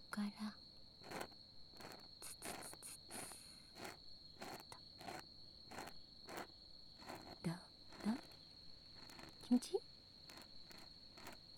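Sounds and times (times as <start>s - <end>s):
slow ASMR ear cleaning: 1.0s - 8.4s, 8.9s - 9.6s, 10.3s - 11.5s.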